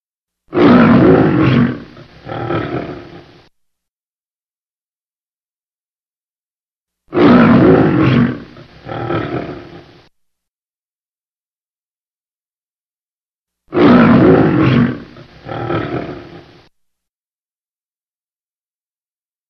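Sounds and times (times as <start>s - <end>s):
lion roaring: 0.5s - 3.5s, 7.1s - 10.1s, 13.7s - 16.7s.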